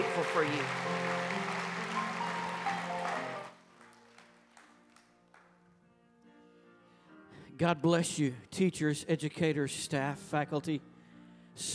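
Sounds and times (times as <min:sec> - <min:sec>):
audience applauding: 0:00.0 - 0:05.6
speech: 0:00.2 - 0:01.2, 0:07.6 - 0:10.9, 0:11.6 - 0:11.7.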